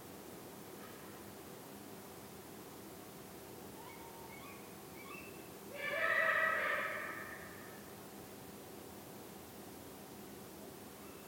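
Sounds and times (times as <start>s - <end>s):
background hiss: 0.0s - 11.2s
Eurasian eagle-owl wailing call: 3.8s - 7.8s.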